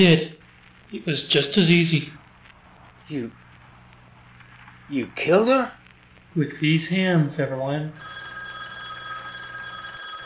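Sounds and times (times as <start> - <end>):
speech: 0.0 - 2.2, 3.1 - 3.4, 4.9 - 5.8, 6.4 - 8.2
telephone bell ringing: 8.0 - 10.2.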